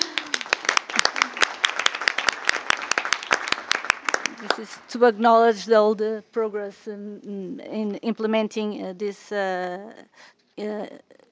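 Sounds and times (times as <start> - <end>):
audience applause for panelists: 0.0 - 4.8
speech: 4.4 - 11.2.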